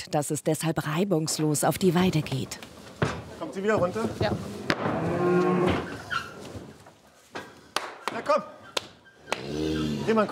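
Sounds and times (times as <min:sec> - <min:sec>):
speech: 0:00.0 - 0:02.8, 0:03.5 - 0:05.9, 0:10.1 - 0:10.3
rustling: 0:02.0 - 0:07.6
mother cow mooing: 0:04.6 - 0:06.0, 0:09.3 - 0:10.3.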